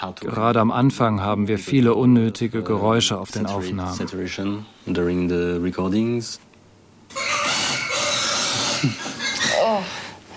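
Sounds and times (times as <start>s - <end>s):
speech: 0.0s - 6.5s, 8.8s - 9.0s
pigs grunting during transport to slaughterhouse: 7.1s - 10.0s.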